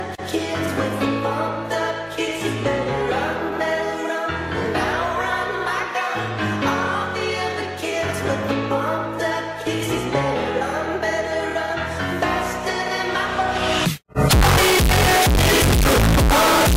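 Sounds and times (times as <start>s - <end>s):
bass: 0.0s - 16.7s.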